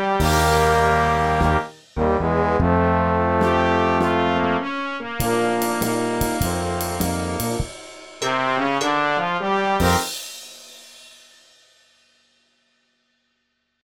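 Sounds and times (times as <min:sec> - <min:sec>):
rhythm and blues music: 0:00.2 - 0:10.1.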